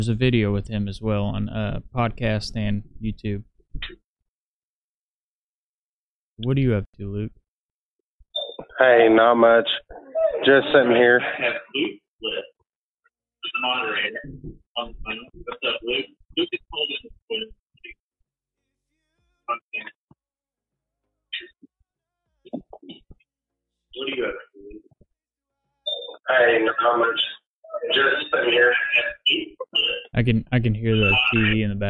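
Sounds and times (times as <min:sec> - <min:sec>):
speech: 0:00.0 - 0:04.0, 0:06.4 - 0:07.4, 0:08.8 - 0:12.5, 0:13.6 - 0:17.6, 0:24.0 - 0:24.8, 0:26.1 - 0:31.8
television voices and programme audio leaking into a phone call: 0:00.0 - 0:04.0, 0:08.3 - 0:12.6, 0:13.4 - 0:18.0, 0:18.6 - 0:20.2, 0:21.0 - 0:31.8.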